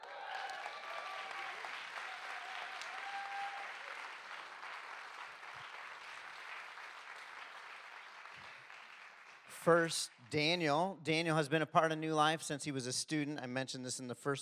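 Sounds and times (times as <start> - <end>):
audience cheering: 0.0 - 9.8
speech: 9.6 - 14.4.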